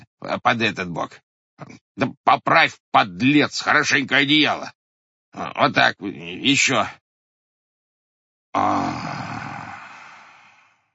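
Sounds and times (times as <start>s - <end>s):
speech: 0.2s - 7.0s, 8.5s - 9.3s
loud snoring: 8.6s - 10.8s.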